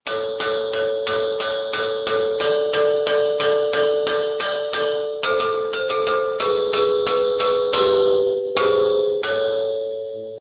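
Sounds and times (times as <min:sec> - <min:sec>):
bell: 0:00.1 - 0:10.4.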